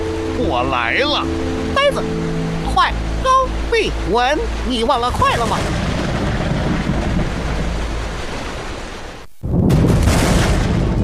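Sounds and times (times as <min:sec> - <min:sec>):
speech: 0:00.4 - 0:05.8
thunder clap: 0:05.2 - 0:11.0.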